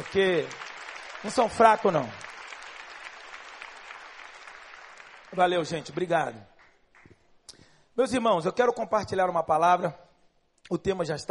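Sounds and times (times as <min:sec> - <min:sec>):
audience applauding: 0:00.0 - 0:07.2
speech: 0:00.1 - 0:00.6, 0:01.2 - 0:02.2, 0:05.3 - 0:06.5, 0:08.0 - 0:10.0, 0:10.7 - 0:11.3.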